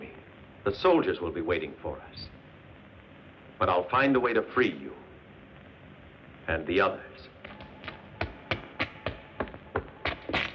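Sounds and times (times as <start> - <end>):
speech: 0.6 - 2.4, 3.6 - 5.0, 6.5 - 7.3
footsteps: 7.4 - 10.5.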